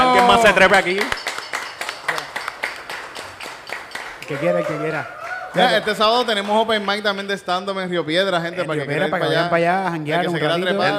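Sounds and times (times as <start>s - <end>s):
audience applause: 0.0s - 7.5s
speech: 0.4s - 1.3s, 4.3s - 10.9s.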